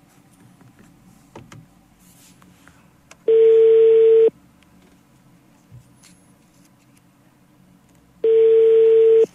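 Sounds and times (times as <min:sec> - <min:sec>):
low hum: 0:00.0 - 0:09.3
telephone ringback tone on a call that is not connecting: 0:03.3 - 0:04.3, 0:08.2 - 0:09.3.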